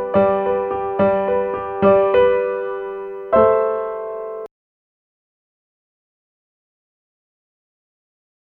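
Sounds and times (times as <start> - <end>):
solo piano: 0.0 - 4.5.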